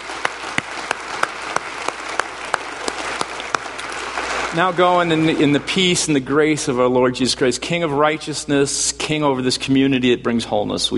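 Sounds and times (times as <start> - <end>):
audience applauding: 0.0 - 6.2
speech: 4.5 - 10.9.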